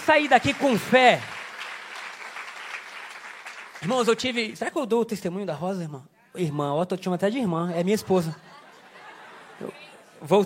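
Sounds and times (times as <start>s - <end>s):
audience applauding: 0.0s - 4.5s
speech: 0.1s - 1.3s, 3.8s - 8.5s, 9.6s - 10.4s
laughter: 8.0s - 10.4s.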